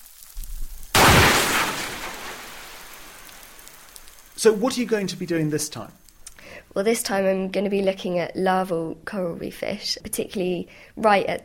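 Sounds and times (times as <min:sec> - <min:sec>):
underwater explosion with echo between two islands: 0:01.0 - 0:03.7
speech: 0:04.4 - 0:06.0, 0:06.8 - 0:11.4.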